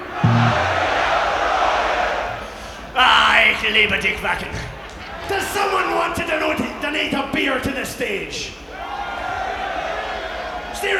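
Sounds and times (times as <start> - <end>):
low tonal hum: 0.0 - 1.2
festival crowd screaming: 0.0 - 7.1, 8.6 - 10.9
speech: 3.7 - 8.6, 10.8 - 10.9.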